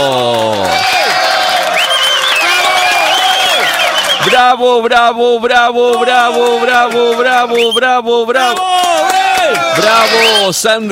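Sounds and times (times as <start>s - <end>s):
crowd applause and cheering for a contest winner: 0.0s - 4.6s, 5.8s - 7.8s, 8.4s - 10.5s
speech: 4.4s - 8.9s, 9.5s - 10.9s.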